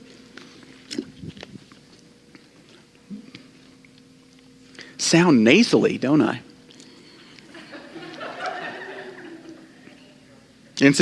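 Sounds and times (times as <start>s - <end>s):
faint low hum: 0.0s - 11.0s
person drinking water: 0.8s - 1.4s
speech: 5.1s - 6.5s, 10.8s - 11.0s
laughter: 7.4s - 10.0s.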